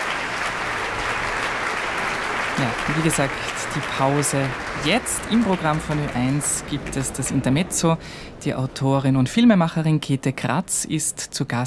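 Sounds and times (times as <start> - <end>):
concert audience applause: 0.0 - 8.4
speech: 2.6 - 11.6.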